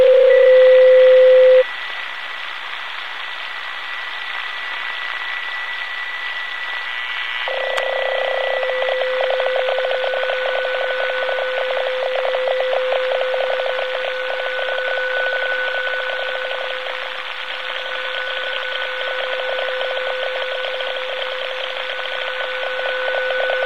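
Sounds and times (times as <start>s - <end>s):
PSK31 digital radio signal stream: 0.0s - 1.7s, 7.5s - 23.6s.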